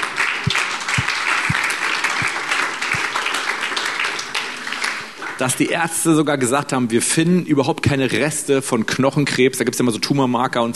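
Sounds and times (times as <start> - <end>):
audience applause: 0.0 - 5.4
speech: 5.4 - 10.7.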